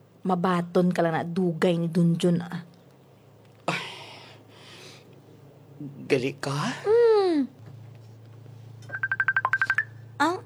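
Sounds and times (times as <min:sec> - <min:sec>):
speech: 0:00.2 - 0:02.7, 0:05.8 - 0:07.5
mobile phone ringtone beeping: 0:08.9 - 0:10.1.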